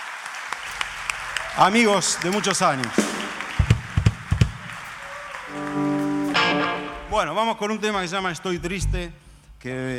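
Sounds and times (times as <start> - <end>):
audience applause: 0.0 - 7.1
speech: 1.6 - 3.2, 7.2 - 9.9.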